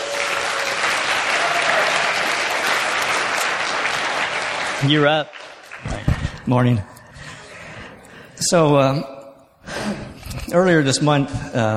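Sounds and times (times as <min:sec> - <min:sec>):
audience applause: 0:00.0 - 0:07.8
speech: 0:04.8 - 0:06.9, 0:08.4 - 0:09.1, 0:09.9 - 0:11.7.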